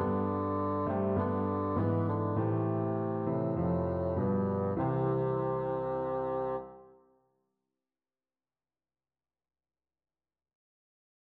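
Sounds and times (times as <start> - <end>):
bassoon: 0.0 - 6.9.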